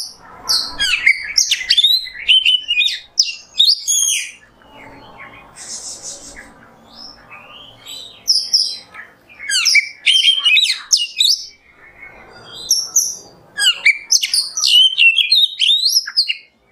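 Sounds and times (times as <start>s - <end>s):
Oriental magpie-robin whistling: 0.0s - 16.5s
hiss: 5.6s - 6.4s.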